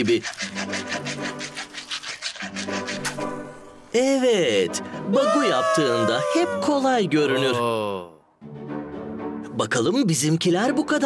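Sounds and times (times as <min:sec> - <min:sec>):
speech: 0:00.0 - 0:00.8, 0:03.9 - 0:08.1, 0:09.6 - 0:11.0
rubbing a wooden stick to light fire: 0:00.0 - 0:03.9.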